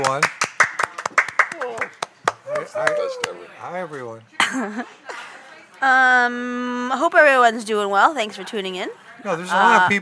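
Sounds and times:
speech: 0:00.0 - 0:00.4, 0:03.1 - 0:05.0, 0:05.8 - 0:09.9
hands clapping: 0:00.0 - 0:03.4.

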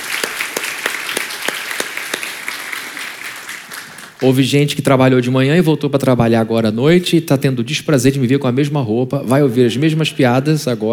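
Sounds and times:
audience applause for volunteers: 0:00.0 - 0:04.3
speech: 0:04.2 - 0:10.9.

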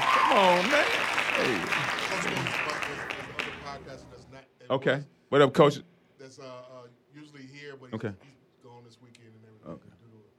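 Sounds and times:
audience applause: 0:00.0 - 0:03.9
speech: 0:00.3 - 0:06.7, 0:07.6 - 0:08.3.

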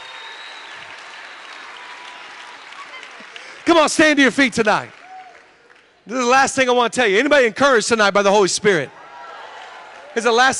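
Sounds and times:
audience applause: 0:00.0 - 0:06.0, 0:09.1 - 0:10.5
speech: 0:03.7 - 0:05.0, 0:06.1 - 0:09.0, 0:10.1 - 0:10.5.

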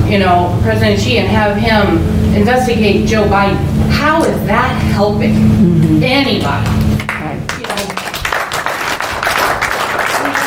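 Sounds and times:
speech: 0:00.1 - 0:06.8
audience clapping: 0:06.2 - 0:10.4.

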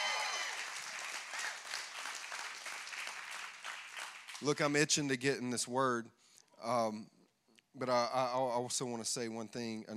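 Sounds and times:
audience applause: 0:00.0 - 0:04.6
speech: 0:04.4 - 0:09.9.

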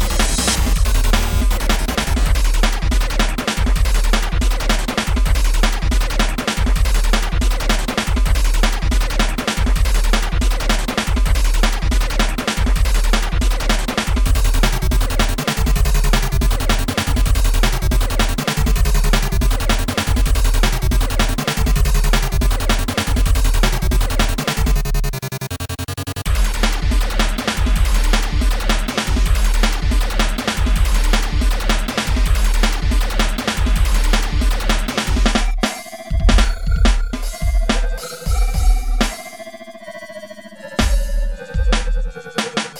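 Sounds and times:
video game console music: 0:00.0 - 0:42.7.

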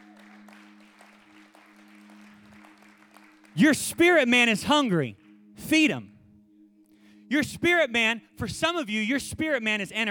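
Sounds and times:
audience clapping: 0:00.0 - 0:05.4
speech: 0:03.6 - 0:06.1, 0:07.3 - 0:10.0.

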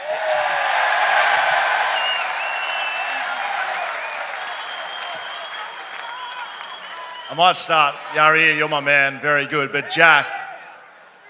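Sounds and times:
whistles and cheers: 0:00.0 - 0:08.1
large live crowd applauding: 0:00.0 - 0:08.4
speech: 0:07.4 - 0:10.4.

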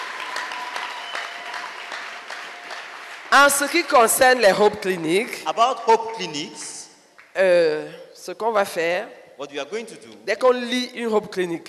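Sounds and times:
church congregation clapping during a thanksgiving service: 0:00.0 - 0:07.4
speech: 0:03.4 - 0:06.8, 0:07.4 - 0:11.6.

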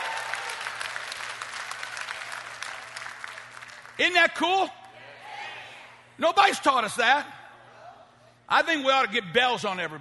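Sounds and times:
audience applauding: 0:00.0 - 0:04.0
speech: 0:04.0 - 0:04.8, 0:06.2 - 0:07.4, 0:08.5 - 0:09.9.

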